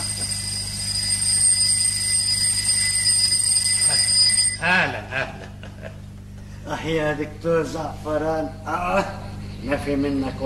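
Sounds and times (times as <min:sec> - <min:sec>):
alarm clock ringing in a hut: 0:00.0 - 0:05.1
laughter: 0:04.7 - 0:06.1
speech: 0:06.8 - 0:10.4.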